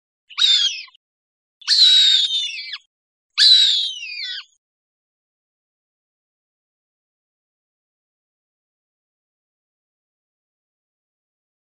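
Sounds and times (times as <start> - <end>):
Cooper's hawk screaming: 0.3 - 1.0, 1.6 - 2.8, 3.4 - 4.5.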